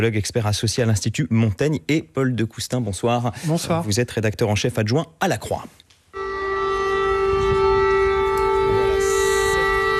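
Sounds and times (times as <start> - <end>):
speech: 0.0 - 5.8
air raid siren in Kiev: 6.2 - 9.9.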